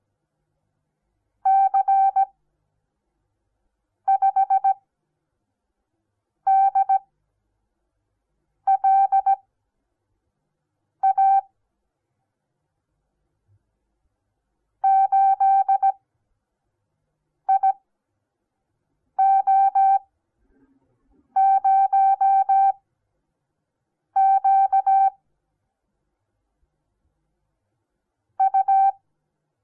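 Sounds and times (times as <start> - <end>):
morse code beeps: 1.5 - 2.3, 4.1 - 4.8, 6.5 - 7.0, 8.7 - 9.4, 11.0 - 11.5, 14.8 - 16.0, 17.5 - 17.8, 19.2 - 20.1, 21.4 - 22.8, 24.2 - 25.2, 28.4 - 29.0.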